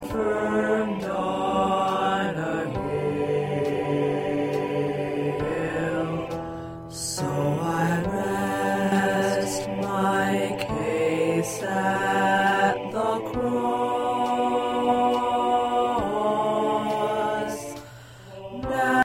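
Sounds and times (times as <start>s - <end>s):
tenor singing: 0.0s - 19.0s.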